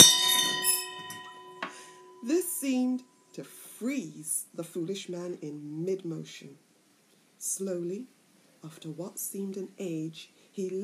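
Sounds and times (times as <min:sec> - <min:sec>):
gong-like strike: 0:00.0 - 0:02.3
speech: 0:02.2 - 0:06.7, 0:07.4 - 0:10.8.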